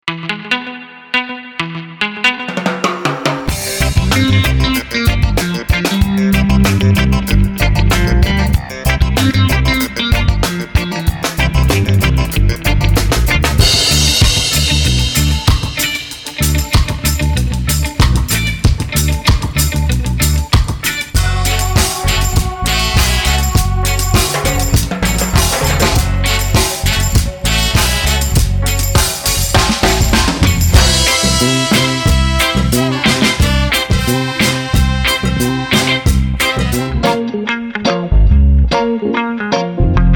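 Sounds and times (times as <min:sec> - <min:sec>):
reggae music: 0:02.4 - 0:40.1.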